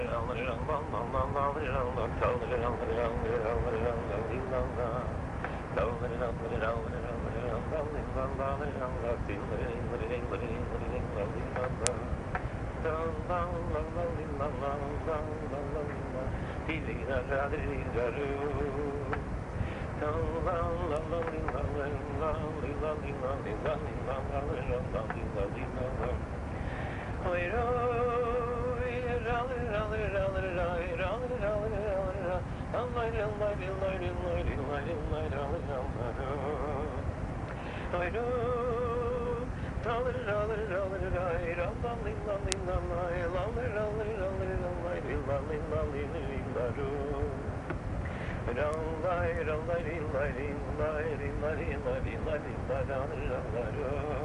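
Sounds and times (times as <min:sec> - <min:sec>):
niggun wordless singing: 0:00.0 - 0:54.2.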